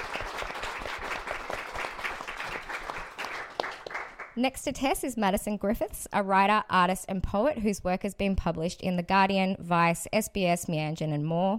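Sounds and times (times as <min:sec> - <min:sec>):
audience applause welcoming a panel speaker at a talk event: 0:00.0 - 0:04.4
speech: 0:04.4 - 0:11.5.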